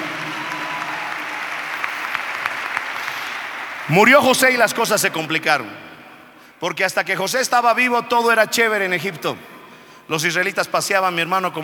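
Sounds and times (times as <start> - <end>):
audience applauding: 0.0 - 5.1
speech: 3.9 - 5.8, 6.6 - 9.5, 10.1 - 11.6.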